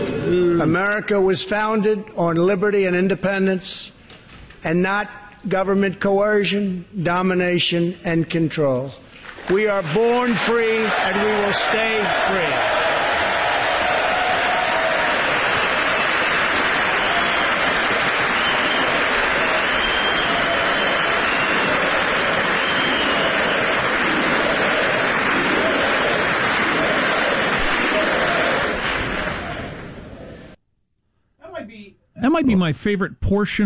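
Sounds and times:
speech: 0:00.2 - 0:04.0, 0:04.6 - 0:12.8, 0:32.4 - 0:33.6
audience applause at a State of the Union address: 0:09.4 - 0:30.0
cheers: 0:09.4 - 0:30.1.

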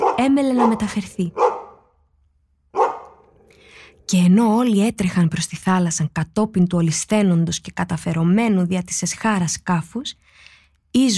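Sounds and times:
large dog barking furiously: 0:00.0 - 0:01.9, 0:02.7 - 0:03.5
speech: 0:00.2 - 0:01.5, 0:04.1 - 0:10.3, 0:10.9 - 0:11.1.

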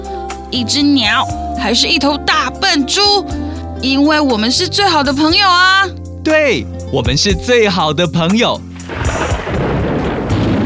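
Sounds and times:
speech: 0:00.5 - 0:08.7
falling rain: 0:08.7 - 0:10.6
rumbling thunder: 0:08.7 - 0:10.6.

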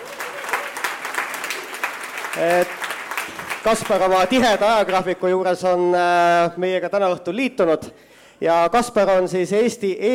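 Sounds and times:
audience applause: 0:00.0 - 0:05.1
speech: 0:02.4 - 0:02.9, 0:03.6 - 0:10.1.

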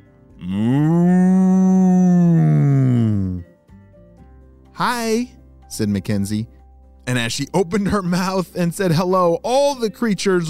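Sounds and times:
cow mooing: 0:00.4 - 0:03.4
speech: 0:04.8 - 0:10.4.

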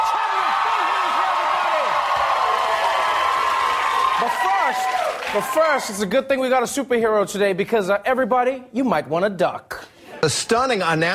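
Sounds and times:
whoops and shouts: 0:00.0 - 0:06.0
studio audience applause and cheering: 0:00.0 - 0:06.1
speech: 0:04.2 - 0:11.1.

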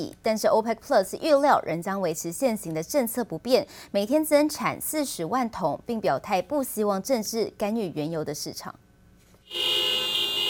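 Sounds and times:
speech: 0:00.0 - 0:08.8
row of taxis honking horns in protest: 0:09.5 - 0:10.4.

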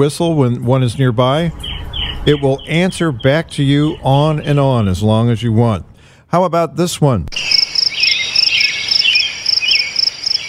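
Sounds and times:
robin song: 0:00.0 - 0:06.1, 0:07.3 - 0:10.4
speech: 0:00.0 - 0:07.5.

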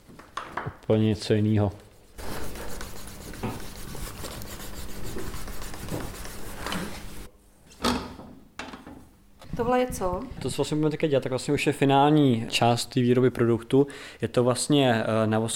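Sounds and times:
speech: 0:00.9 - 0:01.8, 0:09.7 - 0:15.5
leather strap edges burnished by hand with wood: 0:02.2 - 0:07.3.

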